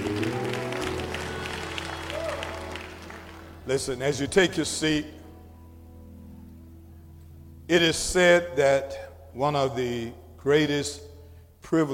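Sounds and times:
people clapping hands: 0:00.0 - 0:04.0
speech: 0:03.7 - 0:05.2, 0:07.7 - 0:11.9.

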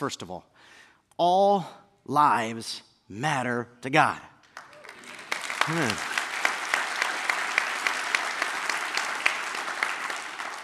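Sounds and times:
speech: 0:00.0 - 0:04.3, 0:05.6 - 0:06.2
audience applause: 0:04.6 - 0:10.6.

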